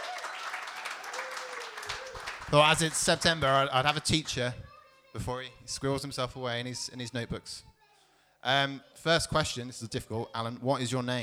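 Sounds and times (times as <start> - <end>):
audience applause: 0.0 - 4.1
speech: 2.5 - 4.6, 5.2 - 7.7, 8.4 - 11.2.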